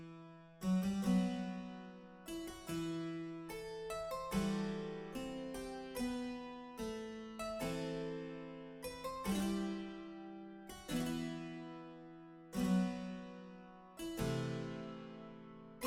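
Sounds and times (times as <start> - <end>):
solo harpsichord piece: 0.0 - 15.8.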